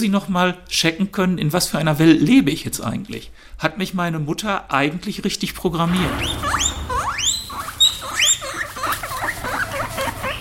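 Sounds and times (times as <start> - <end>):
speech: 0.0 - 6.8
guinea pigs squeaking: 5.9 - 10.3.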